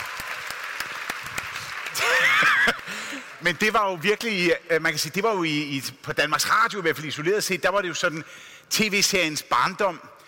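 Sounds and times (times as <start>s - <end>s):
audience clapping: 0.0s - 3.8s
speech: 3.4s - 10.2s.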